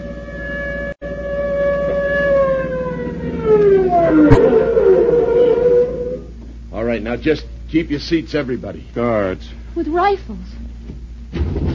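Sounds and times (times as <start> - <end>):
police siren wailing as it passes: 0.0 - 6.4
speech: 7.1 - 10.6.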